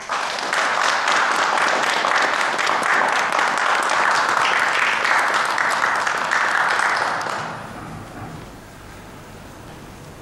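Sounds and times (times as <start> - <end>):
audience applause welcoming new cadets: 0.0 - 8.1.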